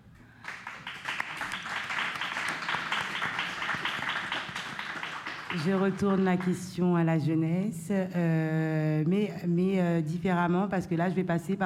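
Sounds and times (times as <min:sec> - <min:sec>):
audience applause: 0:00.4 - 0:06.5
speech: 0:05.5 - 0:11.6.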